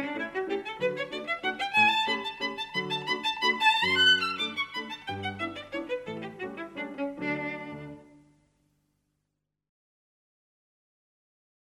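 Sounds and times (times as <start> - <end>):
violin playing a country dance: 0.0 - 8.1.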